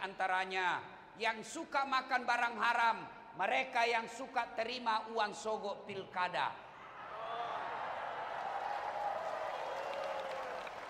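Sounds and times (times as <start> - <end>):
speech: 0.0 - 6.6
applause: 7.2 - 10.8.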